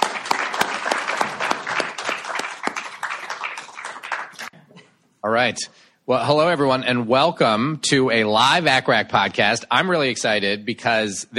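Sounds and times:
audience applause: 0.0s - 4.5s
speech: 5.2s - 11.3s.

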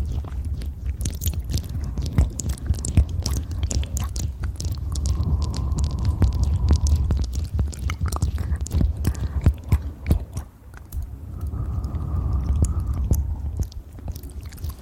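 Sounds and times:
fast ear eating and licking sounds: 0.0s - 14.8s
heavy low rumble: 0.0s - 14.8s
wet clicks and smacks: 0.0s - 14.8s.

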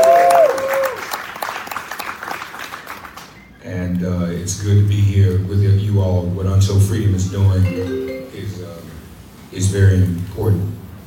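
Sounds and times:
audience applause: 0.0s - 3.3s
speech: 4.0s - 8.9s, 9.5s - 10.7s.

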